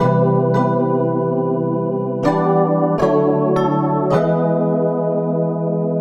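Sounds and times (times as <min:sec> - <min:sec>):
electric piano: 0:00.0 - 0:05.9.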